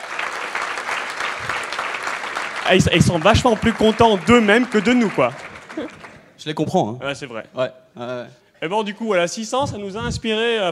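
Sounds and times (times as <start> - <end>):
crowd applauding: 0.0 - 6.3
speech: 2.7 - 10.7.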